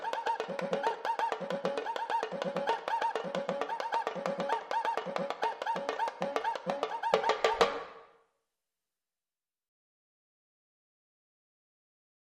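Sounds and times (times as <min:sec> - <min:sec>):
carnival music loop: 0:00.0 - 0:07.9.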